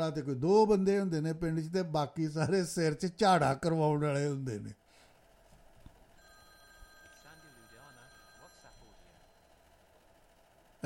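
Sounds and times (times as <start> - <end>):
speech: 0.0 - 4.8
electronic telephone ringing with an incoming call: 6.1 - 10.8.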